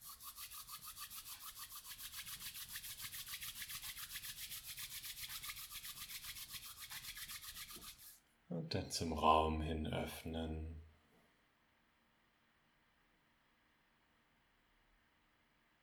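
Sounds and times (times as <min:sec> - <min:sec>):
palms rubbed together in front of the chest: 0:00.0 - 0:08.2
speech: 0:08.7 - 0:10.8.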